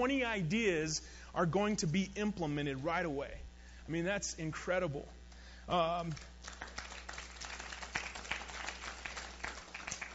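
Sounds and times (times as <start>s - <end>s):
speech: 0.0s - 6.6s
quiet polite golf clap applause: 6.1s - 10.1s.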